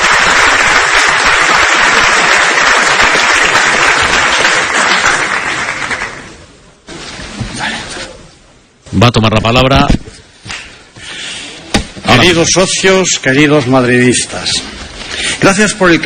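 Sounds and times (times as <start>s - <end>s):
crowd applause in a hotel auditorium: 0.0s - 6.6s
speech: 9.0s - 10.0s, 12.2s - 14.8s, 15.4s - 16.0s.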